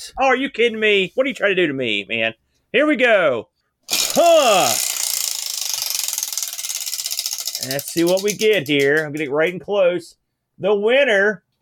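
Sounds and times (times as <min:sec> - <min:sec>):
speech: 0:00.0 - 0:03.5, 0:04.1 - 0:04.8, 0:07.6 - 0:11.4
spinning prize wheel clicking against its pointer: 0:03.9 - 0:09.4.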